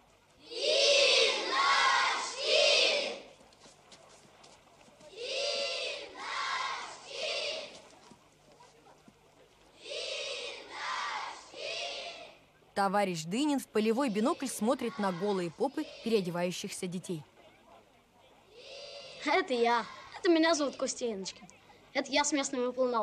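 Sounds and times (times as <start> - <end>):
clamoring crowd shouting in rhythmic chanted bursts: 0.4 - 3.3, 5.1 - 7.8, 9.8 - 12.4, 14.1 - 16.4, 18.5 - 20.2
speech: 12.8 - 17.3, 19.2 - 23.0.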